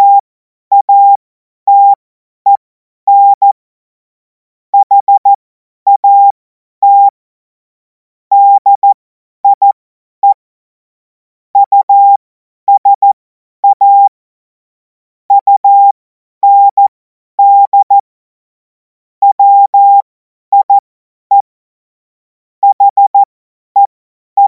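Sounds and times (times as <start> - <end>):
CW Morse code beeps: 0.0 - 3.6, 4.8 - 5.3, 5.9 - 7.1, 8.3 - 10.4, 11.6 - 14.1, 15.4 - 16.8, 17.4 - 18.0, 19.2 - 21.5, 22.6 - 24.4.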